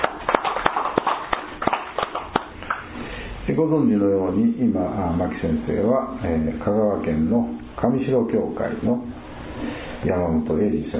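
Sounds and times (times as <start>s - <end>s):
applause: 0.0s - 2.8s
speech: 3.6s - 9.2s, 10.0s - 10.9s.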